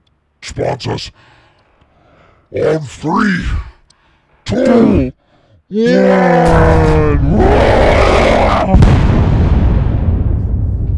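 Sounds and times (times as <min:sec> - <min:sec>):
speech: 0:00.5 - 0:01.4, 0:02.5 - 0:03.7, 0:04.5 - 0:07.9
roaring background: 0:04.5 - 0:10.2
explosion of a factory being bombed: 0:06.4 - 0:10.9.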